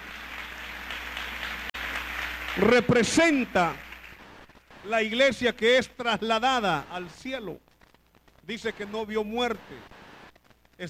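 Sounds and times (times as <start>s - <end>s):
church congregation applauding during a sermon: 0.0s - 5.1s
speech: 2.6s - 3.8s, 4.8s - 7.6s, 8.5s - 9.9s.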